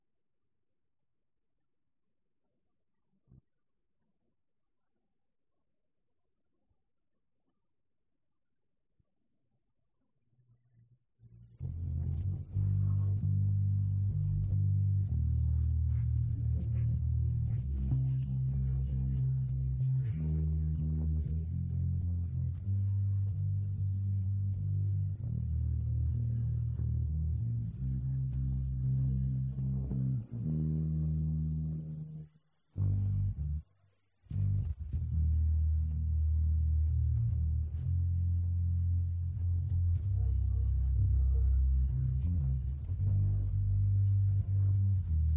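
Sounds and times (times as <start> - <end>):
bass: 11.3 - 45.3.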